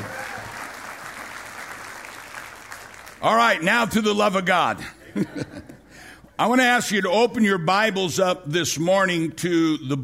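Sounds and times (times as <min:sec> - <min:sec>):
audience applause: 0:00.0 - 0:03.3
speech: 0:03.2 - 0:05.7, 0:06.4 - 0:10.0
laughter: 0:04.8 - 0:06.0.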